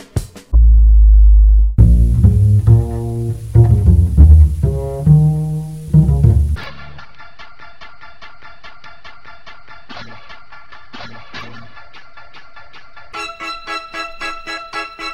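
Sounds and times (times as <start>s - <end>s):
vinyl countdown samples: 0.5s - 6.6s.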